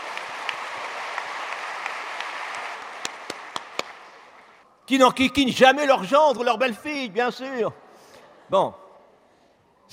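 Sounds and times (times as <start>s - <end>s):
crowd applauding: 0.0s - 4.6s
speech: 4.9s - 7.8s, 8.5s - 8.8s.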